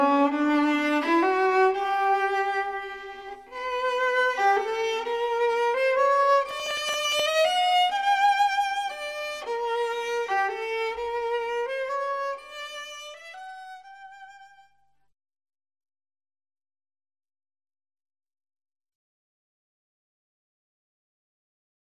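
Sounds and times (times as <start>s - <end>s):
viola: 0.0s - 14.8s.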